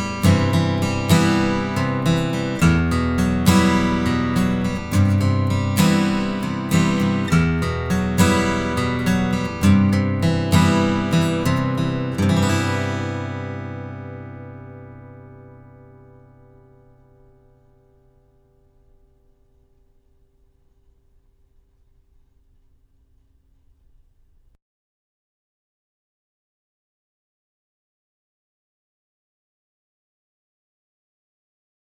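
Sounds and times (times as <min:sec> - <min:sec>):
guitar: 0:00.0 - 0:21.7.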